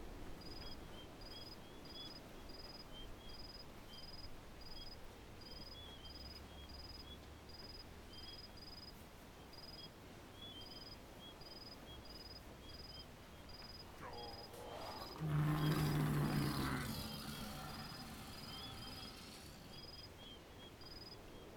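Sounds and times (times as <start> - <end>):
orc camp ambience in the desert at night: 13.8 - 19.9.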